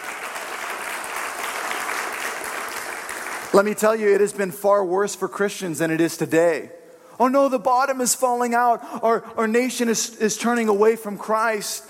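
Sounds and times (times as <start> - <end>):
audience clapping: 0.0 - 4.0
speech: 3.6 - 11.8.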